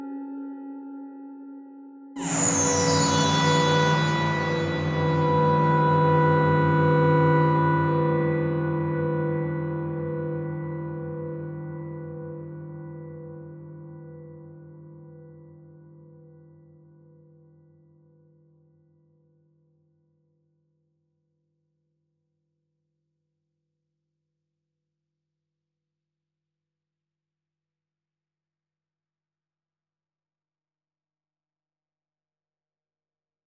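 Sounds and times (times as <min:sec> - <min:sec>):
ambience: 0:02.2 - 0:11.7.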